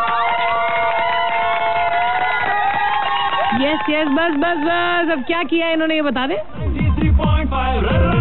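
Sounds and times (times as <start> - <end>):
applause: 0.0 - 4.7
cheering: 0.0 - 5.3
speech: 3.6 - 8.1.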